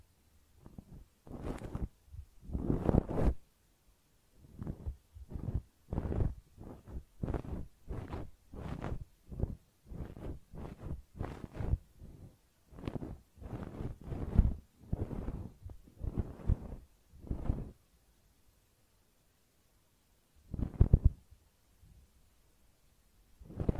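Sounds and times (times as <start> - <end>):
faint low rumble: 0.0 - 23.7
ear cleaning rustling and scraping: 0.6 - 3.4, 4.4 - 17.8.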